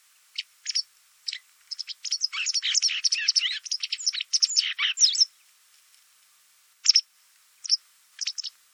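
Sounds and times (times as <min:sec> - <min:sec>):
white wagtail calling with short high double chirps: 0:00.3 - 0:05.4, 0:06.8 - 0:07.0, 0:07.6 - 0:08.6.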